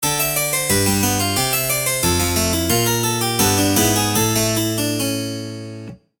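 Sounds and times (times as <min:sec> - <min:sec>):
jingle: 0:00.0 - 0:05.8.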